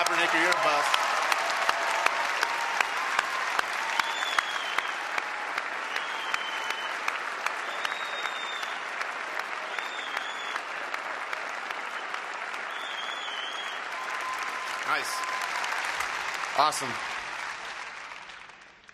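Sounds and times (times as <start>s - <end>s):
University of Utah class of 2014 graduates applauding themselves at commencement: 0.0s - 18.9s
high whistles: 3.9s - 5.0s, 5.9s - 7.0s, 7.6s - 8.8s, 9.7s - 10.6s, 12.0s - 15.7s
speech: 15.0s - 15.5s, 16.6s - 17.1s.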